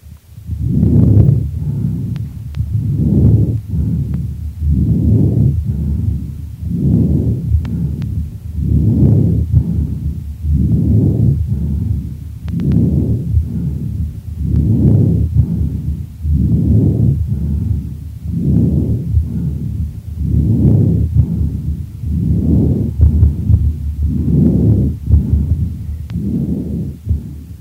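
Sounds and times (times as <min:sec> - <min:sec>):
harsh breathing through stethoscope from chronic bronchitis: 0:00.5 - 0:27.5.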